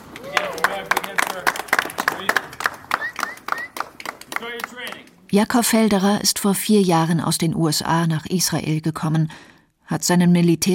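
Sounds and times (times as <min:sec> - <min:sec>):
polite applause from audience: 0:00.0 - 0:05.2
speech: 0:05.3 - 0:10.7.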